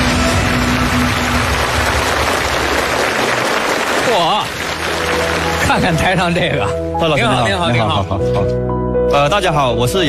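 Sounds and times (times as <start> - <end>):
crowd applause: 0.0 - 6.3
speech: 5.7 - 10.0.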